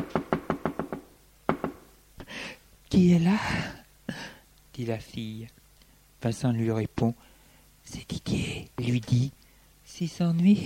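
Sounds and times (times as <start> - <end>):
knocking on a communicating door: 0.0 - 1.8
speech: 2.9 - 3.8, 4.8 - 5.6, 6.2 - 10.6.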